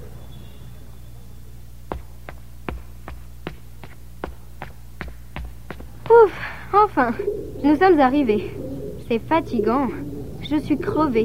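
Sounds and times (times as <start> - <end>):
low hum: 0.0 - 11.2
footsteps climbing the stairs of the Notre-Dame tower in Paris: 1.8 - 7.0
speech: 6.9 - 11.2.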